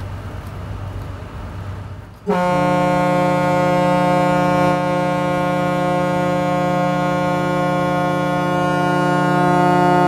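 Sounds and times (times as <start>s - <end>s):
rumble: 0.0s - 8.4s
riverboat whistle blowing: 2.3s - 10.0s.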